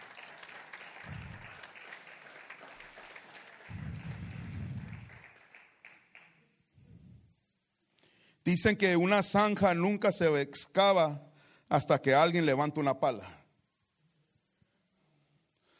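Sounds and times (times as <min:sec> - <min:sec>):
audience applause: 0:00.0 - 0:06.4
speech: 0:08.5 - 0:13.4.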